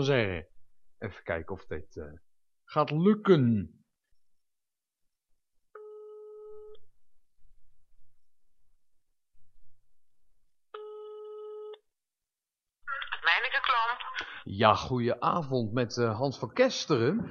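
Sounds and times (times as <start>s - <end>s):
speech: 0.0s - 3.8s, 14.5s - 17.2s
buzzing telephone ring tones: 5.8s - 6.8s, 10.8s - 11.8s.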